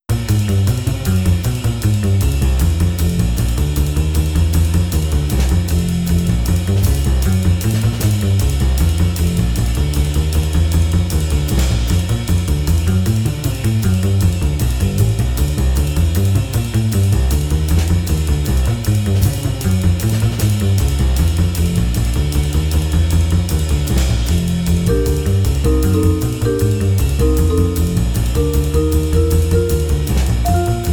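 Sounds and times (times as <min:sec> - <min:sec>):
bebop jazz: 0:00.1 - 0:30.9.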